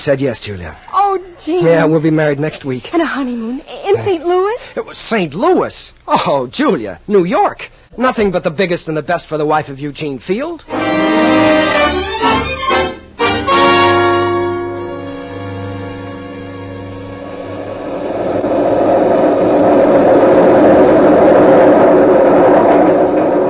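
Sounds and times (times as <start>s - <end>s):
speech: 0.0s - 12.0s
new elevated railway train passing: 10.7s - 23.4s.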